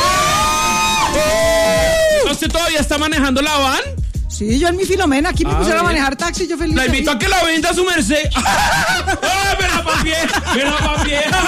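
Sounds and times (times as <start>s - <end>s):
crowd cheering: 0.0s - 2.4s
speech: 2.4s - 11.4s
laughter: 8.3s - 11.4s.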